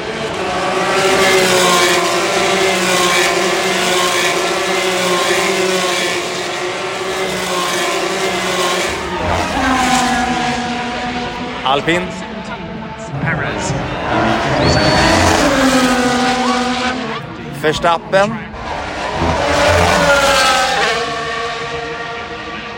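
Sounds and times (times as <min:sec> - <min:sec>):
Formula 3 race car engine screaming at high revs: 0:00.0 - 0:22.7
speech: 0:11.8 - 0:12.2, 0:17.6 - 0:18.5.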